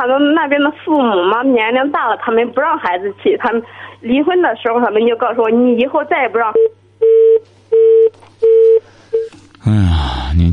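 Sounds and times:
speech: 0.0 - 6.8, 9.7 - 10.5
telephone line tone of a dropped call: 6.6 - 9.3.

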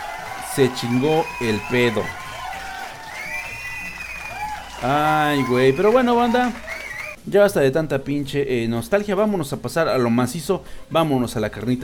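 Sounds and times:
cheering and whistle-like whoops: 0.0 - 7.2
crowd applause: 0.0 - 7.2
speech: 0.6 - 2.2, 4.8 - 6.6, 7.2 - 11.8.

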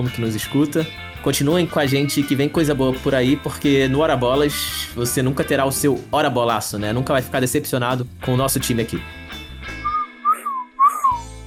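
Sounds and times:
speech: 0.0 - 9.3
person whistling an imitation of a bird: 9.8 - 11.3.

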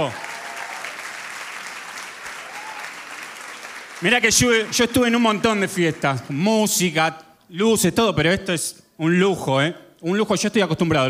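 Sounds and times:
speech: 0.0 - 0.2, 4.0 - 11.0
crowd applause at a party: 0.0 - 6.8.

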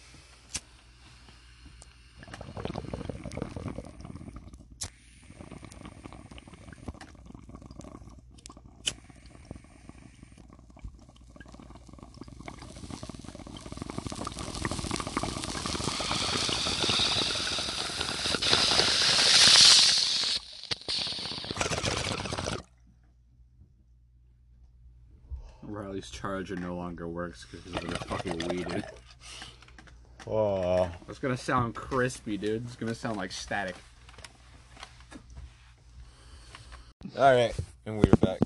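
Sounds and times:
water bubbling in a bong during a hit: 2.1 - 22.9, 27.5 - 29.1
speech: 26.0 - 29.0, 30.3 - 33.9, 37.2 - 38.4.

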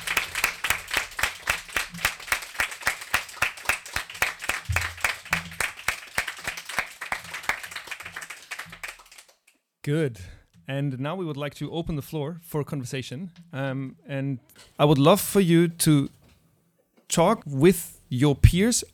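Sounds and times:
audience applause: 0.0 - 9.4
speech: 9.8 - 16.2, 17.1 - 18.9.

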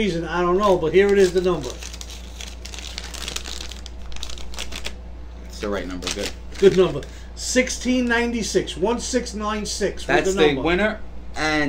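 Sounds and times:
speech: 0.0 - 1.9, 5.6 - 11.6
low steady hum: 0.0 - 11.6
paper envelope being crinkled and opened: 0.5 - 5.0, 5.7 - 7.1.

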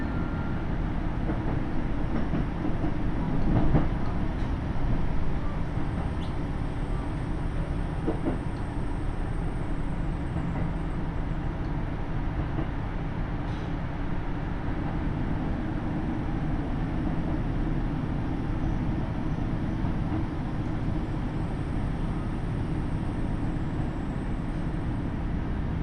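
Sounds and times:
KiHa 75 diesel railcar running from Mino-Ota to Tajimi: 0.0 - 25.8.

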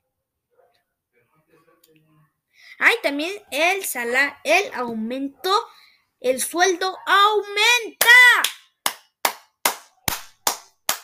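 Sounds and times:
speech: 1.8 - 8.4
loud sharp hand claps: 8.0 - 11.0.

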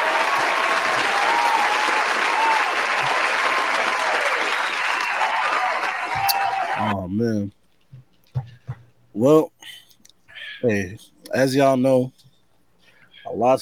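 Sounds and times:
applause: 0.0 - 7.0
speech: 7.1 - 7.6, 9.2 - 9.5, 10.6 - 12.2, 13.4 - 13.5.

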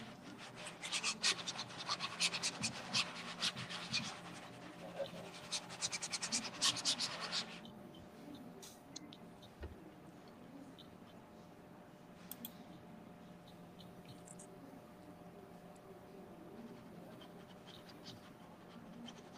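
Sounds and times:
painting strokes with both hands: 0.0 - 7.7, 16.5 - 19.3.

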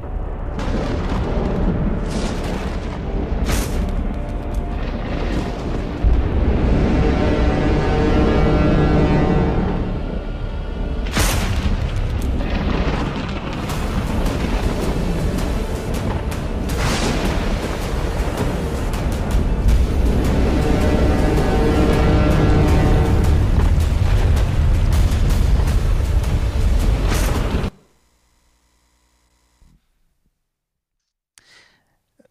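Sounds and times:
thunder rumbling on a mountain: 0.0 - 27.7.

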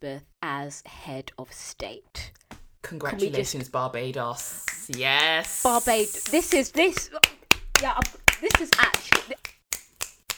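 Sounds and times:
speech: 0.0 - 9.4
sharp crisp clicks and claps: 7.2 - 10.3.

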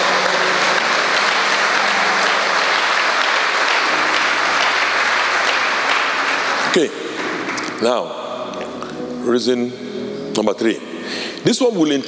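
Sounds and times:
audience applause: 0.0 - 7.8
speech: 6.8 - 7.0, 7.8 - 8.2, 9.3 - 12.0.

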